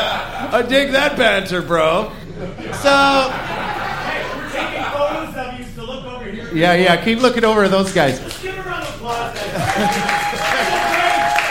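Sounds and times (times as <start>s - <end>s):
speech: 0.0s - 3.6s, 6.6s - 10.4s
laughter: 0.0s - 6.6s, 8.1s - 11.4s
audience applause: 7.9s - 11.4s.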